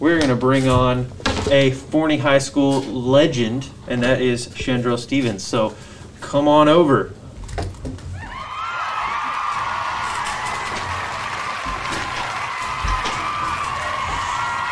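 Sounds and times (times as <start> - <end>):
speech: 0.0 - 7.2
applause and cheering soundbite: 8.2 - 14.7.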